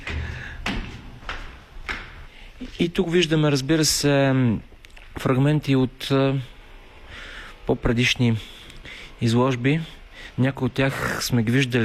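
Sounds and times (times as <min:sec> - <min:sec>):
footsteps walking between studios: 0:00.0 - 0:02.9
speech: 0:02.8 - 0:06.5, 0:07.7 - 0:08.5, 0:09.2 - 0:11.8.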